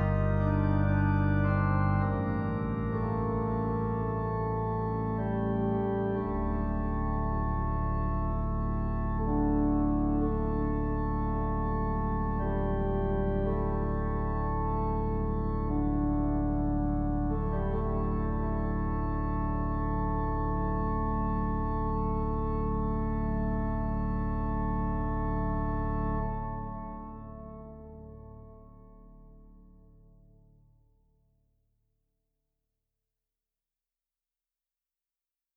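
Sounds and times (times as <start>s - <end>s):
organ playing: 0.0s - 29.4s.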